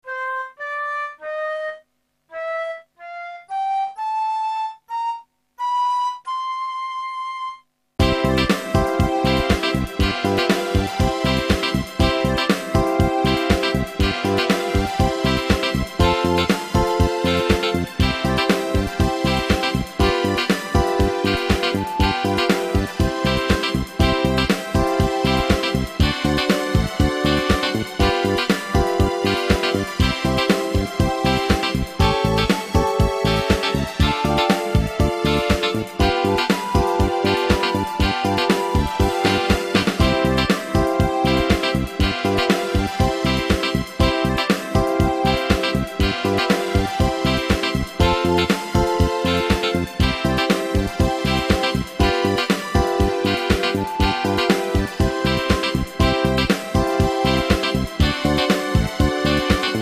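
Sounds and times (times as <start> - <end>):
recorder lesson playing with karaoke backing: 0.4 - 59.8.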